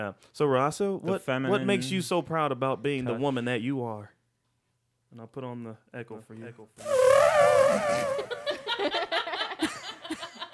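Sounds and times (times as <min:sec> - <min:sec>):
speech: 0:00.0 - 0:04.2, 0:05.1 - 0:09.2
mouth-made fart noise: 0:06.8 - 0:08.8
person laughing: 0:08.1 - 0:10.5.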